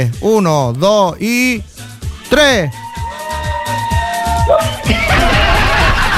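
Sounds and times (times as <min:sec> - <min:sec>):
speech: 0:00.0 - 0:02.8, 0:04.5 - 0:05.2
family shouting together: 0:02.8 - 0:05.7
laughter: 0:04.8 - 0:06.1.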